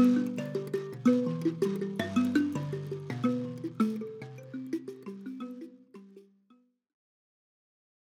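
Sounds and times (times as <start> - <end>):
mbira solo: 0.0 - 6.3.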